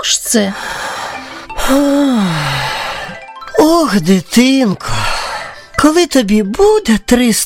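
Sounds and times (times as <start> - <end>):
speech: 0.0 - 0.8, 1.7 - 2.7, 3.6 - 5.0, 5.8 - 7.4
person imitating an old turtle snuffling and sighing: 1.6 - 3.2.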